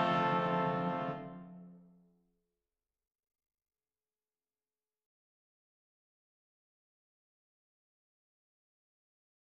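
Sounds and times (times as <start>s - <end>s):
brass playing a hymn: 0.0s - 1.4s.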